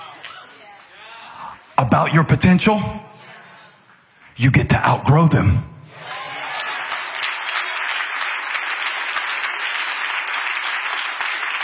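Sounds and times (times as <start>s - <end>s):
speech: 1.8s - 3.1s, 4.4s - 5.7s
large church crowd applause: 5.9s - 11.6s.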